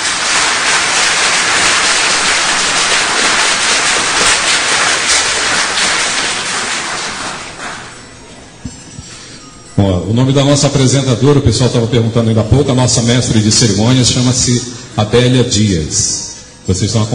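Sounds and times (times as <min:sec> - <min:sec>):
audience applause: 0:00.0 - 0:08.1
speech: 0:09.8 - 0:17.1.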